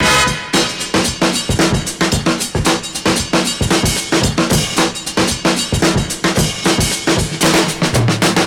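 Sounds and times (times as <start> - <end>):
drum breakbeats: 0.0 - 8.4.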